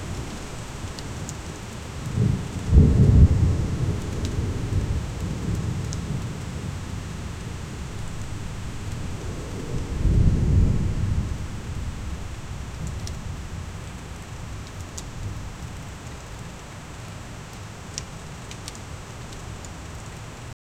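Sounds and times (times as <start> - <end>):
approaching thunderstorm: 0.0 - 15.6.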